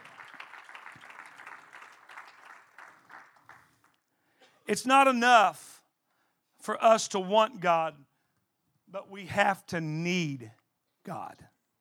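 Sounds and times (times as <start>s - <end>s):
audience clapping hands: 0.0s - 4.0s
speech: 4.7s - 5.6s, 6.6s - 8.1s, 8.9s - 11.5s.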